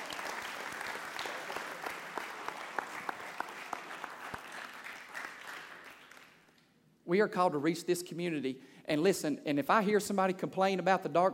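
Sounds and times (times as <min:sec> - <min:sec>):
audience clapping: 0:00.0 - 0:06.7
speech: 0:07.1 - 0:11.3.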